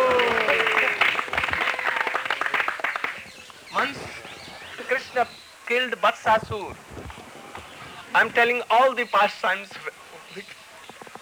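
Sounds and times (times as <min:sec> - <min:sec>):
people clapping: 0:00.0 - 0:05.2
speech: 0:05.2 - 0:06.9, 0:08.2 - 0:10.6.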